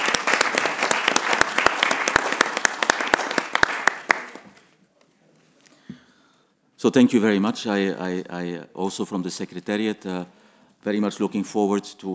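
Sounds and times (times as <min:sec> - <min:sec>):
brief round of applause from a group: 0:00.0 - 0:04.7
speech: 0:06.8 - 0:12.1.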